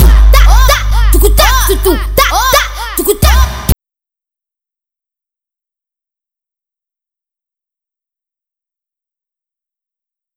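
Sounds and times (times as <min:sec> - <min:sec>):
music beat: 0:00.0 - 0:03.8.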